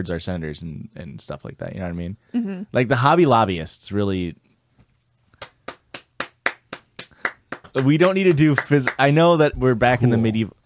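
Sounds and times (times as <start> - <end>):
speech: 0.0 - 4.5, 7.7 - 10.6
manual hand clapping: 5.4 - 9.3.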